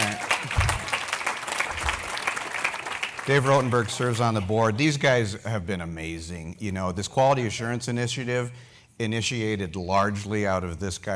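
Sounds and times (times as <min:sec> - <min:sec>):
audience clapping: 0:00.0 - 0:04.8
speech: 0:03.2 - 0:11.1.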